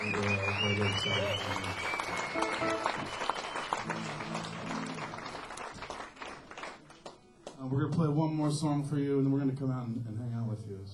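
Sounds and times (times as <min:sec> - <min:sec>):
audience applause: 0:00.0 - 0:07.2
speech: 0:00.1 - 0:03.3, 0:07.8 - 0:10.9.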